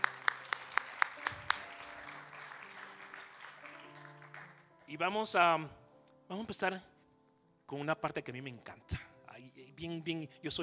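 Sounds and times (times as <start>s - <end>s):
sharp hand claps: 0.0s - 4.7s
speech: 4.9s - 6.9s, 7.7s - 9.0s, 9.8s - 10.6s.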